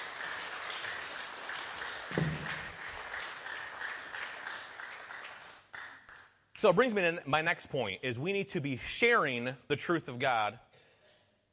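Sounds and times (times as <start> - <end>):
round of applause: 0.0 - 6.8
speech: 2.1 - 2.6, 6.6 - 10.6.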